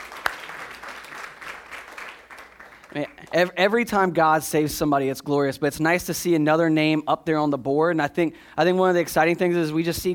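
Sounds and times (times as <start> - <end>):
crowd applause: 0.0 - 3.2
speech: 2.9 - 10.1.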